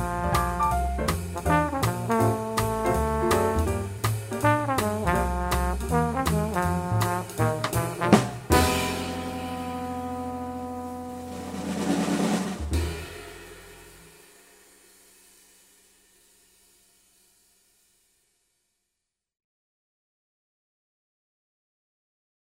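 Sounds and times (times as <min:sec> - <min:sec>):
groove blues trombone: 0:00.0 - 0:12.8.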